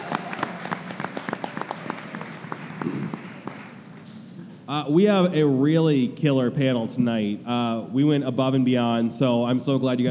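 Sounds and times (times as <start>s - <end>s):
audience clapping at a festival industry panel: 0.0s - 4.2s
speech: 4.7s - 10.0s.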